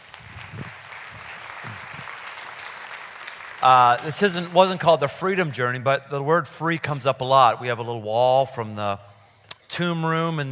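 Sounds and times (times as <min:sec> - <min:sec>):
audience applause: 0:00.0 - 0:05.0
speech: 0:03.6 - 0:09.1, 0:09.8 - 0:10.5.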